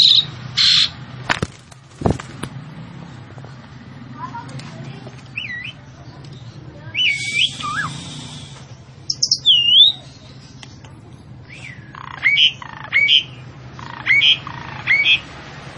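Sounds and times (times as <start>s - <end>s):
female Javan pied starling giving harsh squawks and whistled notes: 0.0s - 0.9s, 7.0s - 10.1s, 11.5s - 15.3s.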